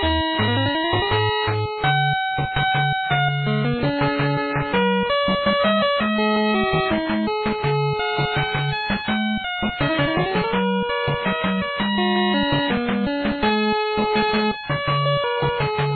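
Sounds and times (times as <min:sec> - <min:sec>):
background music: 0:00.0 - 0:15.9.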